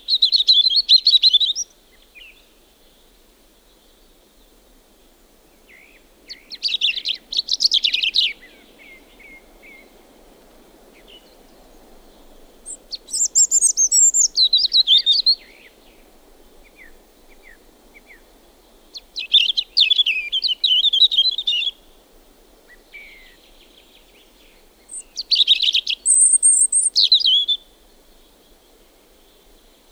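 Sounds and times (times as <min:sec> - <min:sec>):
European robin song: 0:00.0 - 0:02.4, 0:05.6 - 0:10.0, 0:10.8 - 0:21.9, 0:22.7 - 0:27.9.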